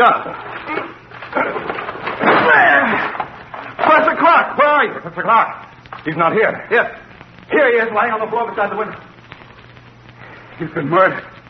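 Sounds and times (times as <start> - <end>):
speech: 0.0 - 0.8, 4.3 - 9.1, 10.6 - 11.3
door crashing and splintering as it gives way: 0.0 - 4.2.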